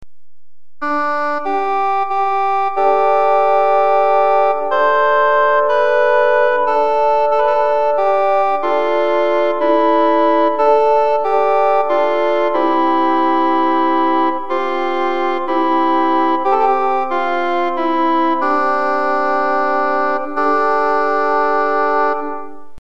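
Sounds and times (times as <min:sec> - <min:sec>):
Chechen folk music: 0:00.9 - 0:22.6.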